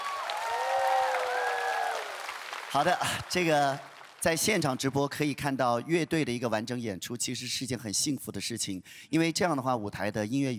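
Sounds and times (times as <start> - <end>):
studio audience applause for a young singer and her band: 0.0 - 4.8
speech: 2.7 - 10.5.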